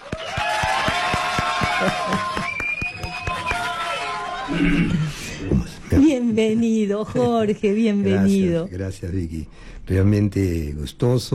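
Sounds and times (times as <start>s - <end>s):
audience applause: 0.0s - 4.5s
speech: 1.8s - 2.1s, 4.6s - 5.2s, 6.4s - 11.3s.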